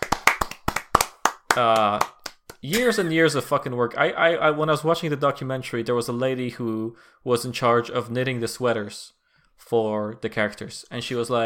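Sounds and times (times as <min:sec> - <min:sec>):
hand clapping: 0:00.0 - 0:03.2
speech: 0:01.6 - 0:11.4.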